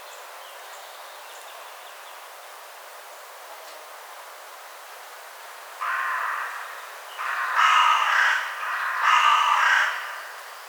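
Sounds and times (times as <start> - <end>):
carrion crow cawing: 5.8 - 10.6.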